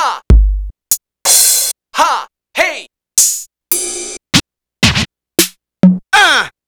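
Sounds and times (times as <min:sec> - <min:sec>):
Roland CR-80 drum machine: 0:00.3 - 0:01.7, 0:03.2 - 0:06.1.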